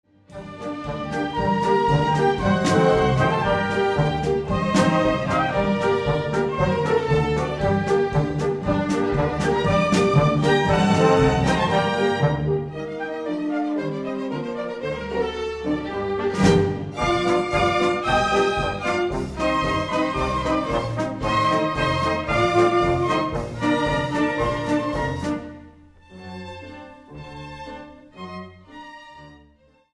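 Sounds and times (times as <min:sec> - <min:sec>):
classical instrumental dance piece: 0:00.1 - 0:29.9.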